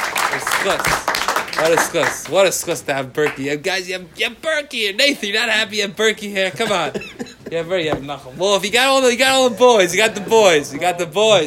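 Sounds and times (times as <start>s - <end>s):
crowd clapping: 0.0s - 3.5s
speech: 0.6s - 11.4s.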